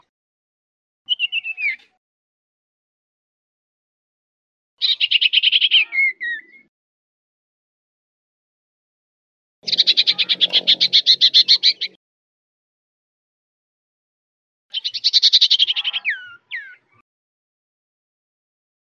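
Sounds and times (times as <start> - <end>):
cipoh bird whistling used as a lure for bird catching: 1.1 - 1.9, 4.8 - 6.7, 9.6 - 12.0, 14.7 - 17.0.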